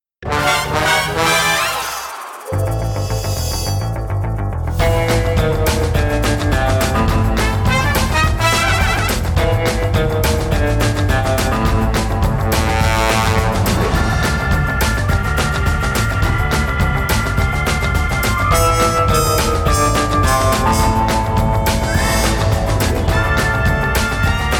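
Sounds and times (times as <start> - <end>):
instrumental theme music: 0.3 - 24.5.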